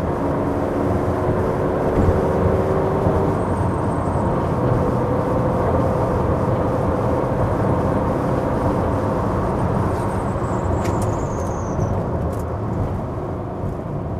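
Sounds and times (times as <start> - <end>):
BMW 3.0 CSL Alpina car driving: 0.0 - 14.1.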